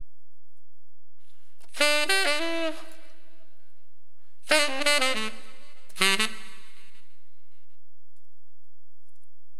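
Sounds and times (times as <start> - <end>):
tenor wind instrument: 1.6 - 7.8.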